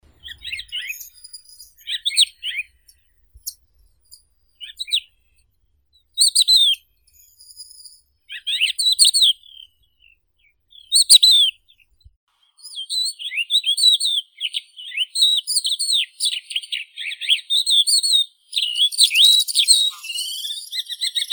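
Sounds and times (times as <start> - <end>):
Galerida cristata crested lark: 0.0 - 17.6, 18.5 - 21.3.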